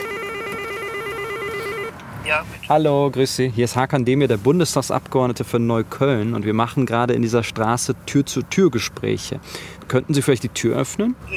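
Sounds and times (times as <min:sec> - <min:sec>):
electronic doorbell buzz: 0:00.0 - 0:01.9
speech: 0:02.3 - 0:11.3.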